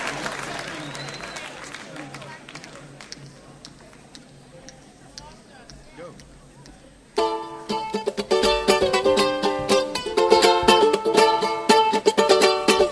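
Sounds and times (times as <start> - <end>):
ukulele orchestra playing: 7.2 - 12.9.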